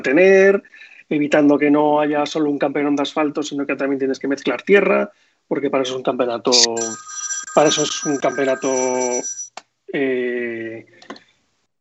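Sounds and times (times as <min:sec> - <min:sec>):
speech: 0:00.0 - 0:11.2
phone ringing mid-call: 0:06.5 - 0:09.5.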